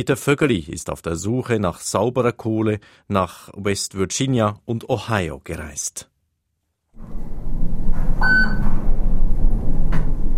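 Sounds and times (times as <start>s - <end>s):
speech: 0.0s - 6.1s
hotel elevator rumbling and humming: 7.0s - 10.3s
electronic beep: 8.2s - 8.7s.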